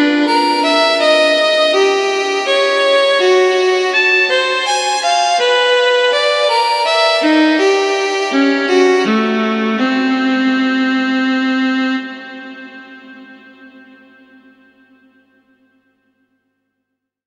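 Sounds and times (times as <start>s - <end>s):
solo violin playing a slow sonata movement: 0.0s - 13.2s.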